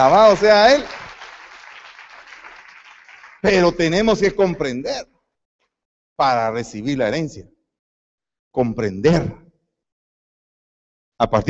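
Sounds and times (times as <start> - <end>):
speech: 0.0 - 1.0, 3.4 - 5.1, 6.2 - 7.5, 8.5 - 9.4, 11.2 - 11.4
audience applause: 0.0 - 3.8.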